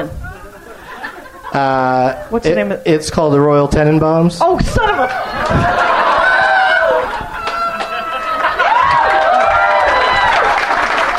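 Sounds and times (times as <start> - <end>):
laughter: 0.3 - 2.3, 5.0 - 10.9
speech: 1.5 - 6.0
crowd applauding: 5.0 - 11.1.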